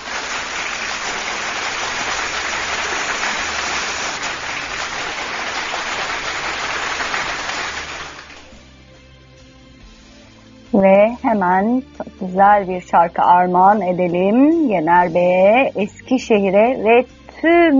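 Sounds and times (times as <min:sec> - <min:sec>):
crowd applause: 0:00.0 - 0:08.5
speech: 0:10.8 - 0:17.7.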